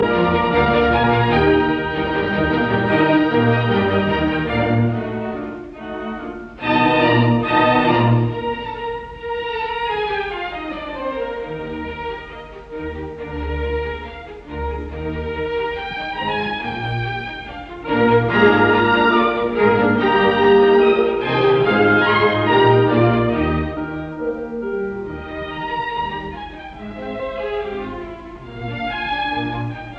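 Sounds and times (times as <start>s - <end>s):
piano concerto: 0.0s - 29.9s.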